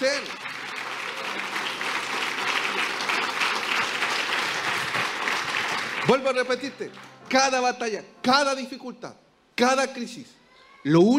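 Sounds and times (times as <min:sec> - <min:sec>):
audience applause: 0:00.0 - 0:07.3
speech: 0:06.1 - 0:11.1.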